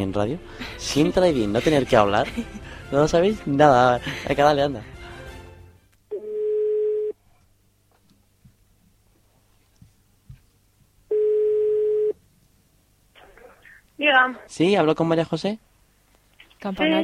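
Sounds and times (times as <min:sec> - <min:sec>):
speech: 0:00.0 - 0:05.0, 0:14.0 - 0:15.7, 0:16.6 - 0:17.0
outgoing call telephone tone: 0:06.1 - 0:07.2, 0:11.1 - 0:12.2.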